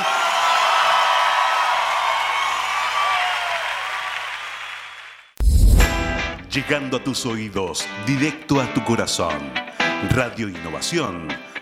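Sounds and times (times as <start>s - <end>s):
crowd loud applause: 0.0s - 5.3s
speech: 6.6s - 11.5s.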